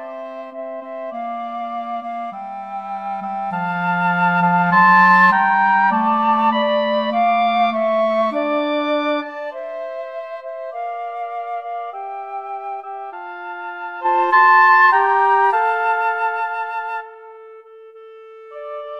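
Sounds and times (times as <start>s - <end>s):
clarinet: 0.0s - 18.9s
flute: 0.0s - 18.9s
oboe: 0.0s - 18.9s.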